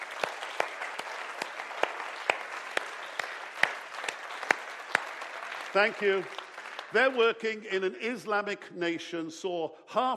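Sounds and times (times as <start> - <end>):
audience clapping: 0.0 - 8.0
speech: 5.7 - 10.1.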